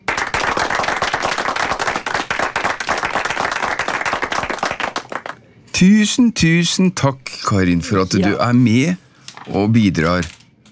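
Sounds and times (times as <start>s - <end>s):
group applauding: 0.0s - 5.4s
speech: 5.8s - 10.4s.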